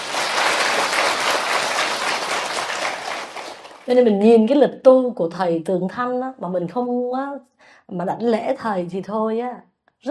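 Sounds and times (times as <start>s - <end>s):
audience applause: 0.0s - 3.9s
speech: 3.9s - 10.0s.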